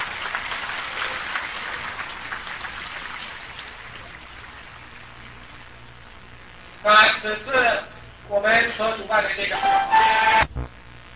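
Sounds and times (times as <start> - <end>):
audience clapping: 0.0 - 5.4
speech: 6.8 - 10.4.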